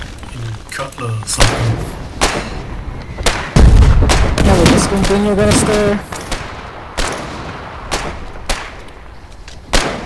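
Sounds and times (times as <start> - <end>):
speech: 0.8 - 2.5, 4.7 - 6.2
gunfire in a video game: 1.4 - 9.0, 9.7 - 10.0.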